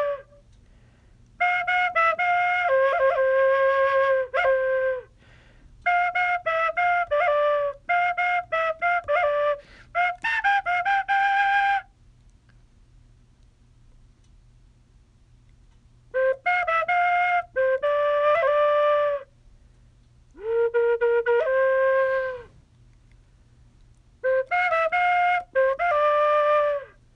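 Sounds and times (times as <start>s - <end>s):
bamboo flute: 0.0s - 0.5s, 1.4s - 5.2s, 5.8s - 12.0s, 16.1s - 19.4s, 20.3s - 22.6s, 24.2s - 27.1s.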